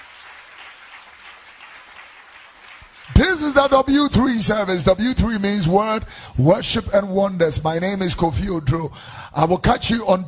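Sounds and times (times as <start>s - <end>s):
people clapping hands: 0.0s - 4.6s
speech: 3.1s - 10.2s.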